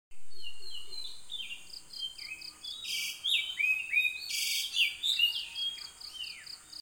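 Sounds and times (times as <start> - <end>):
Oriental magpie robin: 0.2 - 6.7.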